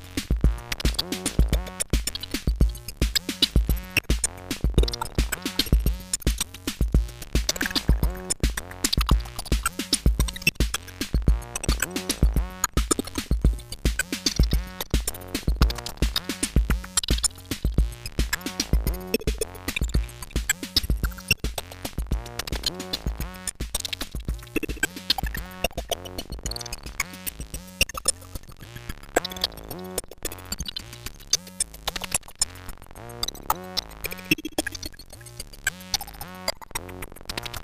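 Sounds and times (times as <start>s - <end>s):
modded drum machine snare drum: 0.0s - 28.4s
modded drum machine bass drum: 0.0s - 32.2s.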